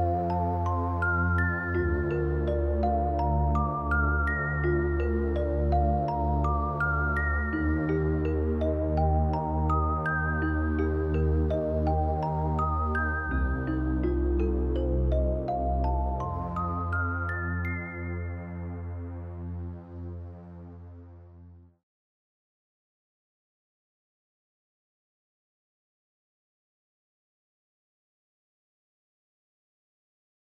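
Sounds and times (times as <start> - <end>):
gentle meditation music: 0.0 - 21.8.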